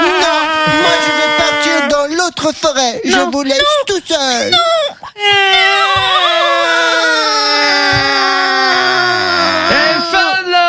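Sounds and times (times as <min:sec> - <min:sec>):
performer imitating crying: 0:00.0 - 0:02.0, 0:04.4 - 0:10.4
speech: 0:02.4 - 0:06.2.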